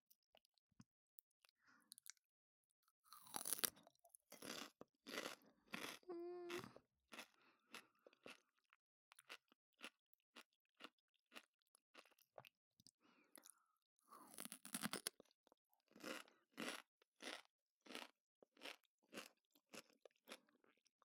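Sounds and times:
crunching on cucumber with miso mayonnaise: 3.1 - 8.5, 14.2 - 20.4.

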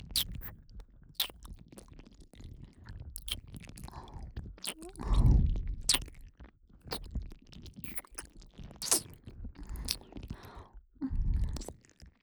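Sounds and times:
ear licking in the right ear: 0.2 - 0.5, 3.2 - 5.4, 5.9 - 6.1, 6.9 - 7.1, 7.8 - 10.6, 11.5 - 11.8.

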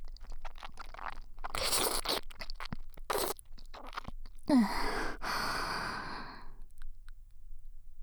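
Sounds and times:
deep ear licking: 0.0 - 5.8.

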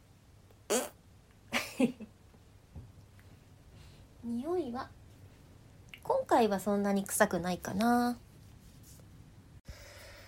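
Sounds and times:
person farting after lunch: 0.7 - 1.0
speech: 1.8 - 2.1, 4.2 - 5.0, 6.1 - 8.2.

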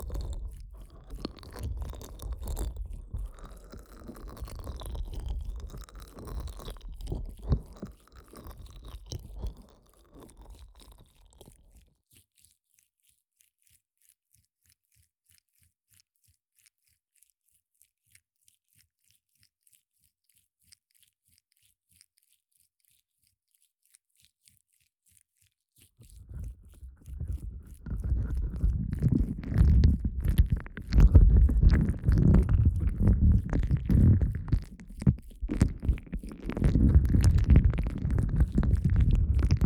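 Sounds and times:
ASMR ear licking in the right ear: 0.0 - 11.8, 26.0 - 39.6.

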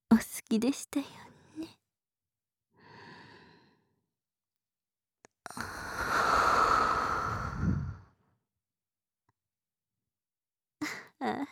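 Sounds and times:
speech: 0.5 - 1.8
hot heavy breathing: 5.7 - 8.1.

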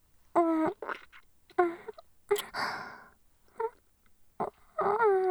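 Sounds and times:
ear licking: 0.4 - 2.7, 4.4 - 5.2
kissing: 0.4 - 2.7, 3.5 - 3.8, 4.4 - 5.2.

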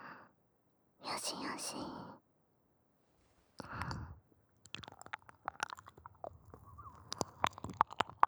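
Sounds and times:
person whispering in right ear: 1.1 - 2.0, 4.7 - 8.2
ear licking in right ear: 3.6 - 8.2.

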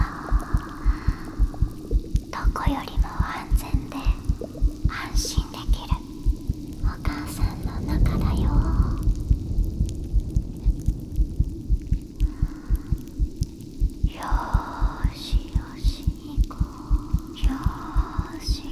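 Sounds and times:
person whispering: 0.0 - 9.2, 14.0 - 18.7
carbonated drink fizzing: 0.0 - 18.7
heartbeat: 0.0 - 18.7.

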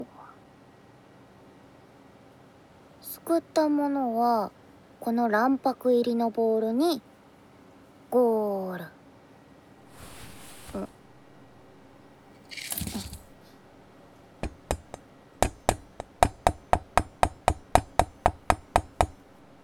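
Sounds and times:
speech: 3.2 - 7.1, 8.1 - 9.0
rustling noise: 9.8 - 16.2
knife tapping and chopping on a cutting board: 12.5 - 13.4, 14.4 - 19.3.

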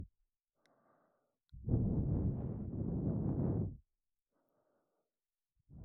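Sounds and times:
breathing loop on the left side for sleep: 0.6 - 3.7, 4.3 - 5.1.

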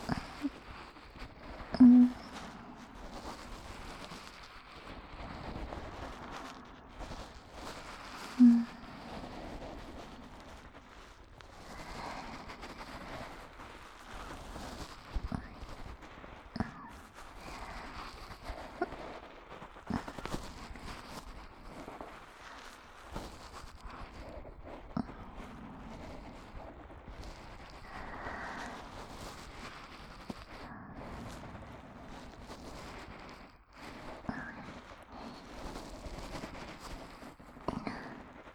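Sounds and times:
ear massage ASMR sounds for sleep in both ears: 0.0 - 38.5.

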